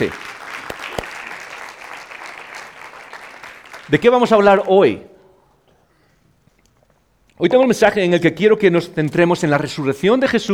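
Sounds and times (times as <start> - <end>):
speech: 0.0 - 0.2, 3.9 - 5.1, 7.4 - 10.5
audience applause: 0.0 - 4.7.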